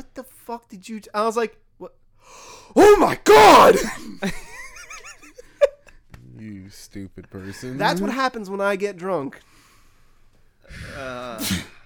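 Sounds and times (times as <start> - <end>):
speech: 0.2 - 4.5, 6.4 - 9.6, 10.7 - 11.8
sneeze: 2.9 - 4.2, 10.9 - 11.8.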